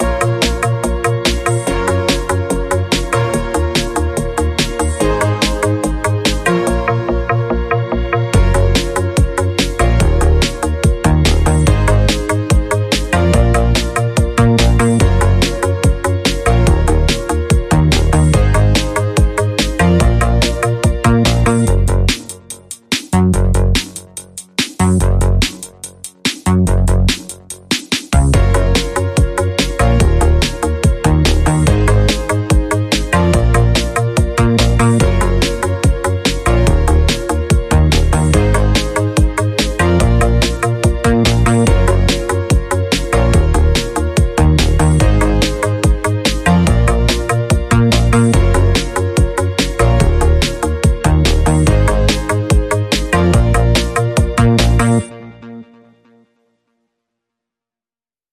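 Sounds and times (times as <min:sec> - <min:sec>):
sci-fi rhythmic synths: 0:00.0 - 0:56.2.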